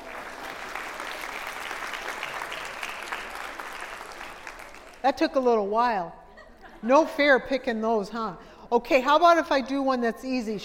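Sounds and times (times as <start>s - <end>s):
audience clapping: 0.0s - 5.1s
speech: 5.0s - 6.2s, 6.8s - 10.6s.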